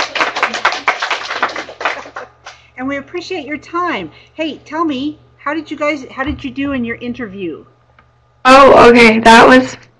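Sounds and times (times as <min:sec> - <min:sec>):
audience clapping: 0:00.0 - 0:02.6
speech: 0:02.8 - 0:07.8, 0:08.4 - 0:09.8.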